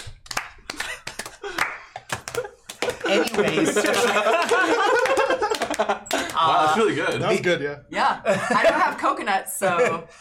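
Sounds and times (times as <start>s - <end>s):
hand claps imitating horse hooves: 0.0s - 6.8s
laughter: 0.7s - 7.1s, 8.2s - 10.1s
speech: 3.1s - 10.1s.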